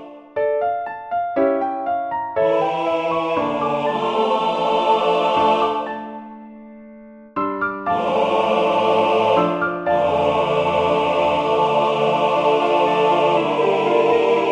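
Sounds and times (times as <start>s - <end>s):
SATB choir singing vocalise: 0.0s - 0.4s, 2.4s - 6.2s, 7.9s - 14.5s
piano: 0.0s - 14.5s.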